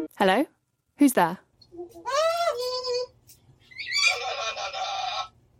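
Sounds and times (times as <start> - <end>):
speech: 0.2 - 2.1
two parrots squawking over video call: 3.7 - 5.3.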